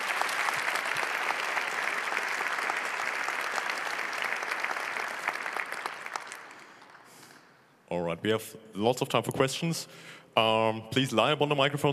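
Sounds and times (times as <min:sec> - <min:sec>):
audience applause after a talk: 0:00.0 - 0:07.3
speech: 0:08.0 - 0:11.9.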